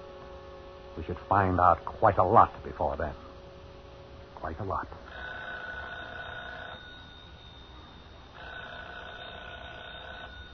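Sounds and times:
speech: 0:01.0 - 0:03.2, 0:04.4 - 0:05.1
telephone ringing: 0:05.1 - 0:10.5.

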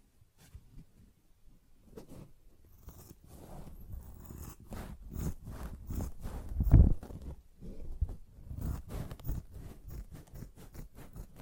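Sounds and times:
sponge handled with scratchy squishy strokes: 0:02.1 - 0:07.3, 0:08.5 - 0:11.4.

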